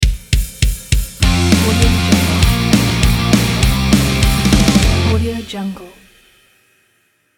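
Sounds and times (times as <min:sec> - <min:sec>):
punk rock logo music: 0:01.2 - 0:05.2.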